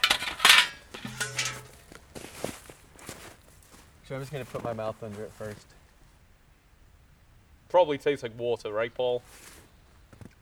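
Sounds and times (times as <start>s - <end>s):
metal sap bucket clanking as it is hung on a tap: 0.0s - 2.5s
speech: 4.1s - 5.8s, 7.7s - 9.5s.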